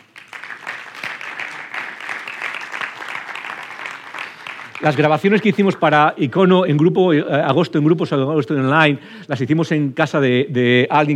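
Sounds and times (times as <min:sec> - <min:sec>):
audience applause: 0:00.0 - 0:05.7
speech: 0:04.8 - 0:11.1.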